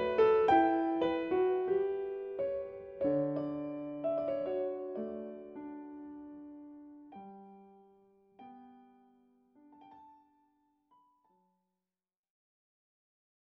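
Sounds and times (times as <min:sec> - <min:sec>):
piano note G: 0:00.0 - 0:07.8.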